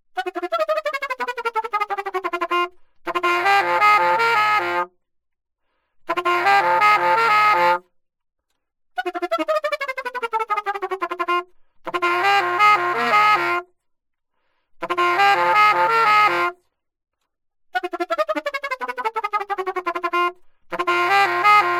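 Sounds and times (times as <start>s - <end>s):
alto saxophone: 0.2s - 5.0s, 6.1s - 7.9s, 9.0s - 13.8s, 14.8s - 16.7s, 17.8s - 21.7s.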